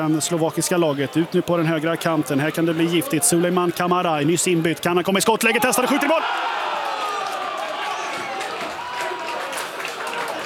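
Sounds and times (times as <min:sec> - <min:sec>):
speech: 0:00.0 - 0:06.6
away fans cheering a goal in stadium: 0:00.0 - 0:10.4
scattered clapping: 0:06.0 - 0:10.4.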